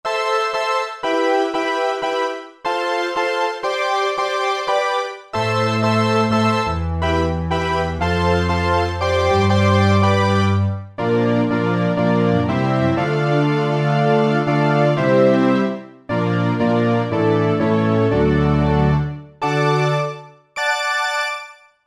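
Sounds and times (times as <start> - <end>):
Roland JV-2080 synthesizer: 0.1 - 21.7.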